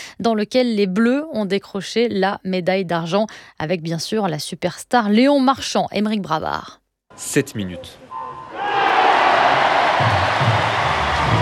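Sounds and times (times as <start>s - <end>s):
speech: 0.2s - 8.1s
crowd cheering at a swimming relay: 8.1s - 11.3s.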